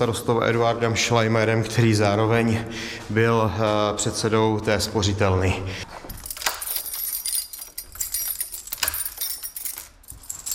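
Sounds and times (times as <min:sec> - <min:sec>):
speech: 0:00.0 - 0:06.0
keys jangling: 0:05.9 - 0:10.5
heavy vault door being unlocked and pulled open: 0:06.0 - 0:10.5.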